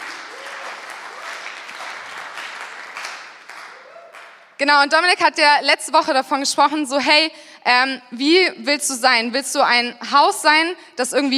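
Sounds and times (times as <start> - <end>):
audience applause: 0.0 - 4.6
speech: 4.6 - 11.3.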